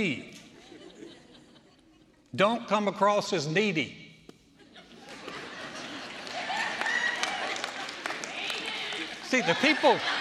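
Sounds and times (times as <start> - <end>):
speech: 0.0 - 0.3, 2.3 - 4.0, 9.3 - 10.1
laughter: 0.4 - 2.3, 4.5 - 10.1
audience clapping: 5.0 - 10.1.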